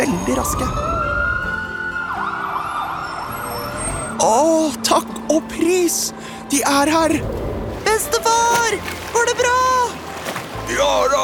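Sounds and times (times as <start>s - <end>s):
speech: 0.0s - 1.0s, 4.2s - 9.6s, 10.7s - 11.2s
alarm siren going off: 0.0s - 4.4s.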